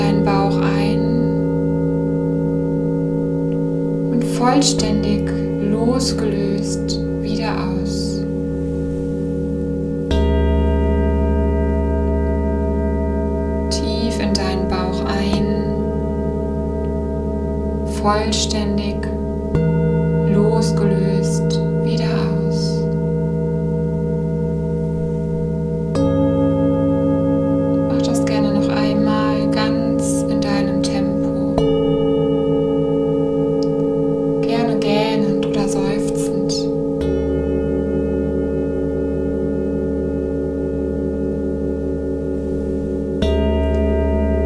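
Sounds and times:
person speaking: 0.0 - 1.4, 4.1 - 8.2, 13.7 - 15.9, 17.9 - 19.2, 20.3 - 22.9, 27.9 - 31.6, 34.4 - 36.7
singing bowls ringing: 0.0 - 44.4.

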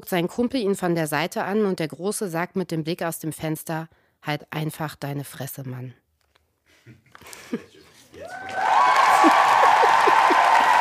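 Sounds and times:
speech: 0.0 - 6.0, 6.9 - 9.4
laughter: 6.8 - 10.7
applause: 8.2 - 10.7.

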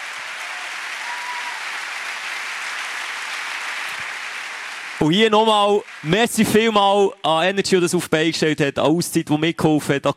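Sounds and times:
audience applause: 0.0 - 7.2
speech: 5.0 - 10.1.

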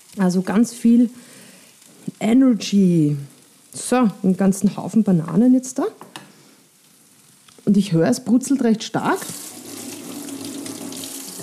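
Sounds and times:
speech: 0.1 - 1.4, 2.2 - 6.2, 7.7 - 9.4
tap water running while washing fingers: 9.0 - 11.4.

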